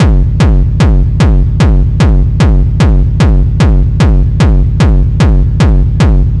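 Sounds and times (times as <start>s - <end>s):
distorted hard techno kick loops: 0.0s - 6.3s.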